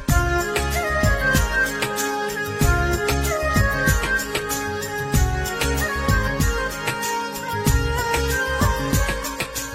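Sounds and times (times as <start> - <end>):
background music mobile ringtone: 0.1 - 9.7.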